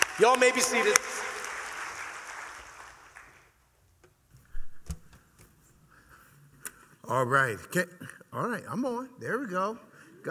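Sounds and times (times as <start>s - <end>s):
audience applause welcoming a pastor to the stage: 0.0s - 3.6s
speech: 0.2s - 1.2s, 7.1s - 10.2s.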